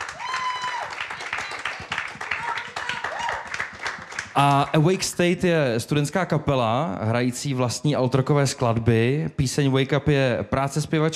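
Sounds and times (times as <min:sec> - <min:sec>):
audience applause: 0:00.0 - 0:05.2
speech: 0:04.4 - 0:11.1.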